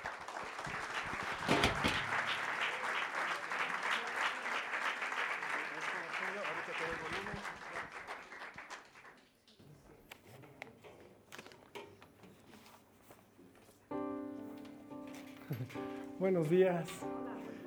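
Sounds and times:
audience applause welcoming a speaker: 0.0s - 9.4s
speech: 15.6s - 17.2s.

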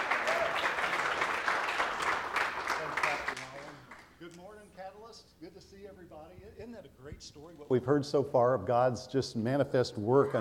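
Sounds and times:
audience applauding to welcome guests onto a platform: 0.0s - 4.1s
speech: 6.8s - 10.4s.

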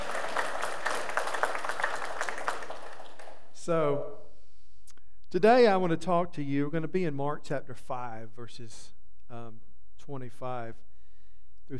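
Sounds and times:
audience applause: 0.0s - 3.5s
speech: 3.7s - 4.2s, 5.3s - 10.9s.

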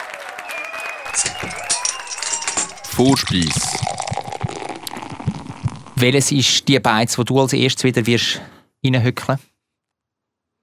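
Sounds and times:
applause: 0.0s - 4.6s
crowd cheering: 0.0s - 4.6s
speech: 1.1s - 1.9s, 2.9s - 4.0s, 6.0s - 9.5s.

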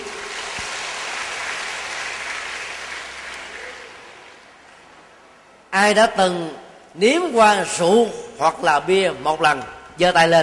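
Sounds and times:
applause from students: 0.0s - 4.6s
speech: 5.8s - 10.4s.

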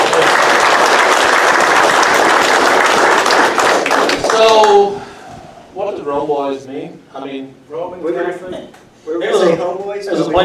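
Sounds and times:
round of applause from a group: 0.0s - 4.9s
speech: 6.1s - 10.4s.

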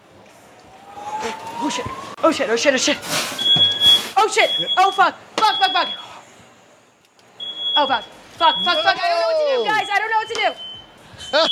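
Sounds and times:
smoke detector alarm: 0.8s - 6.2s, 7.4s - 9.0s, 9.7s - 11.5s
speech: 1.7s - 3.4s, 4.3s - 6.0s, 7.8s - 10.7s, 11.3s - 11.5s.

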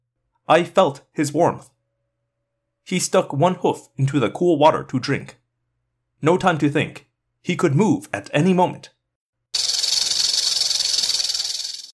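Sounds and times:
speech: 0.5s - 1.8s, 2.9s - 5.4s, 6.2s - 9.0s
rattlesnake tail rattling: 9.6s - 11.9s.

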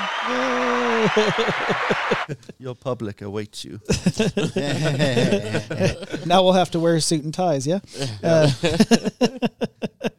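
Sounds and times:
audience applause: 0.0s - 2.3s
laughter: 0.0s - 2.6s, 3.9s - 6.7s, 8.0s - 10.1s
speech: 0.2s - 10.1s.

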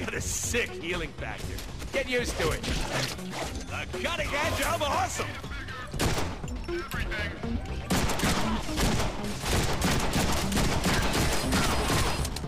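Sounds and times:
speech: 0.1s - 10.6s
rapid video game gunfire: 7.9s - 12.4s.

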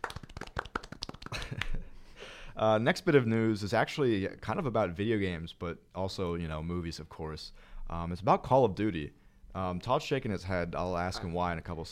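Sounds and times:
few people clapping for a guest on a chat show: 0.0s - 1.8s
speech: 2.6s - 11.8s.

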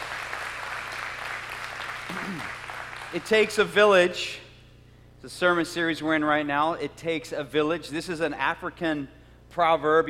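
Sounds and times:
congregation clapping at a church service: 0.0s - 3.8s
speech: 2.1s - 4.4s, 5.2s - 10.0s.

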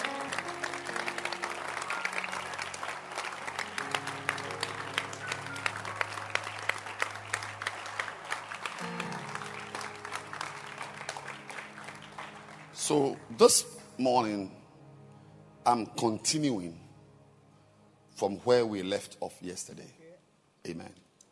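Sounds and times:
congregation clapping at a church service: 0.0s - 14.0s
low sustained musical tones: 0.0s - 20.0s
speech: 12.9s - 14.6s, 15.7s - 16.8s, 18.2s - 20.0s, 20.7s - 21.0s.

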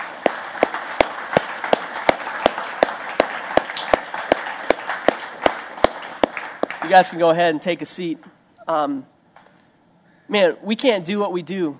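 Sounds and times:
audience applause: 0.0s - 7.2s
speech: 6.9s - 9.1s, 10.3s - 11.7s.

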